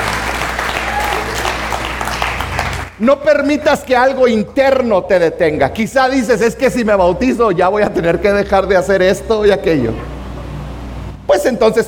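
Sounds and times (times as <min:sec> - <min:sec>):
church congregation applauding during a Spanish-language service: 0:00.0 - 0:03.0
speech: 0:03.0 - 0:10.1, 0:11.3 - 0:11.8.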